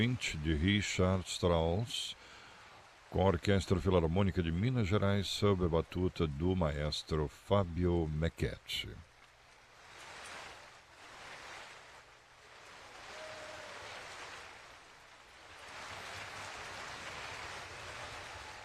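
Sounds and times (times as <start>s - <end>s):
speech: 0.0s - 2.3s, 3.1s - 9.1s
audience standing ovation applause: 12.9s - 14.6s, 15.8s - 18.6s.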